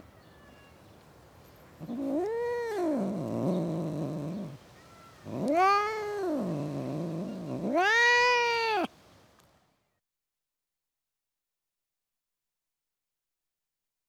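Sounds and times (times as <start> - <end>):
domestic cat meowing in a suburban garden: 1.8 - 8.9.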